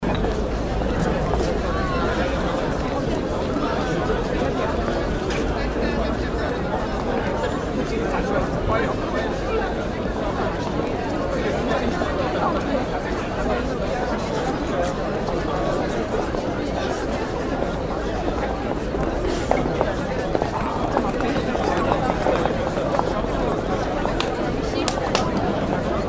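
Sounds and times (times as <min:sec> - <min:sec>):
crowd outside a university: 0:00.0 - 0:26.0.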